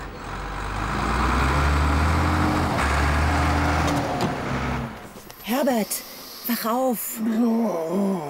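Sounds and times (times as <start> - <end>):
excavator engine running: 0.0 - 5.4
speech: 5.6 - 8.2.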